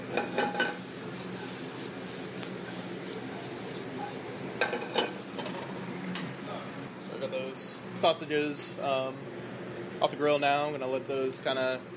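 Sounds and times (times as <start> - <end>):
scraping stirs in a pan: 0.0 - 5.8
black-eyed peas sizzling in a pan of mirepoix: 0.0 - 6.9
speech: 8.0 - 9.3, 10.0 - 11.9.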